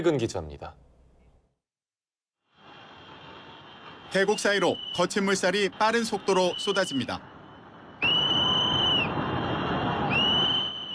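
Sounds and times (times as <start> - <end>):
speech: 0.0 - 0.8, 4.1 - 7.3
urgent whistle blowing: 4.1 - 9.2, 10.0 - 10.9.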